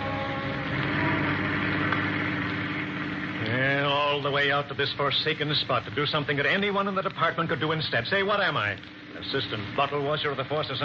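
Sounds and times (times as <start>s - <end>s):
car engine while speeding on: 0.0s - 6.5s
speech: 4.2s - 10.8s.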